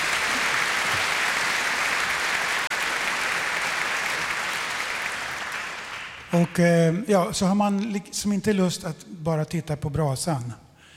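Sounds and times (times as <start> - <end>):
crowd applause: 0.0 - 6.6
speech: 6.3 - 10.6.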